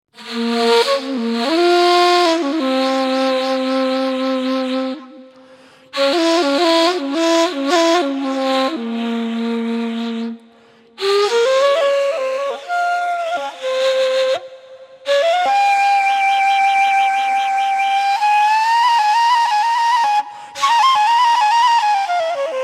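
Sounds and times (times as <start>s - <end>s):
Turkish kaval in C: 0.1s - 22.6s.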